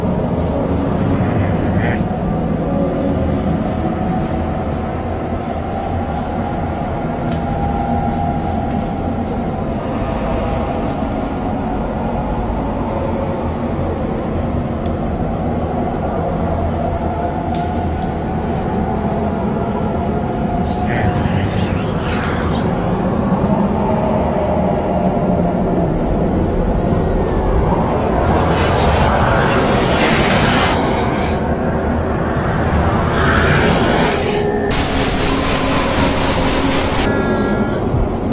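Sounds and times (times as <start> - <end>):
spooky ambience: 0.0 - 38.3.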